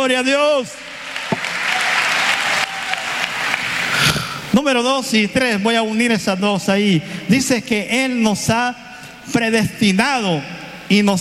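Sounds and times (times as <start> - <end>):
speech: 0.0 - 0.9, 4.5 - 11.1
audience applause: 0.9 - 4.3.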